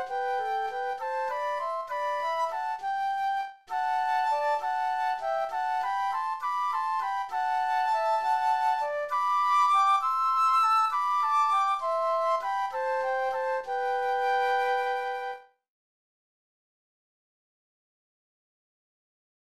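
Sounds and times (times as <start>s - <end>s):
flute duet: 0.0s - 15.6s.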